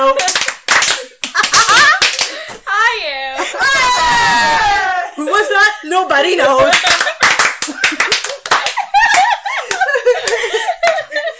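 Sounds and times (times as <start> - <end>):
group giggling and chattering laughter: 0.0 - 2.5, 3.4 - 5.7, 6.6 - 11.3
scattered out-of-sync hand claps: 0.2 - 2.4, 6.7 - 11.0
speech: 5.8 - 7.0.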